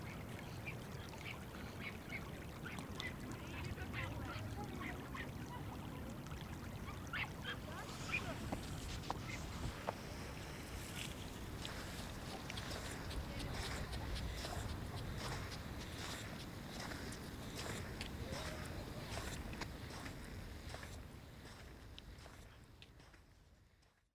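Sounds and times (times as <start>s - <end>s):
flowing water: 0.0s - 23.3s
footsteps on sand: 7.2s - 23.2s.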